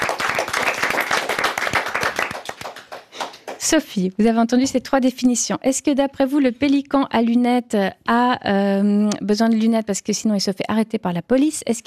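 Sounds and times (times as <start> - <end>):
applause: 0.0 - 3.8
speech: 3.6 - 11.8.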